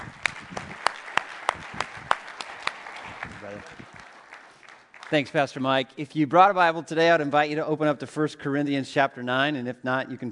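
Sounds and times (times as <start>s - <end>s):
sparse applause at a church service: 0.0s - 5.6s
speech: 5.1s - 10.3s.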